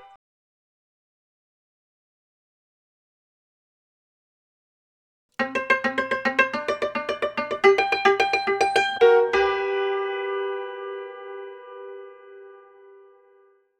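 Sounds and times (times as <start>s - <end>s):
cimbalom: 5.4s - 12.8s.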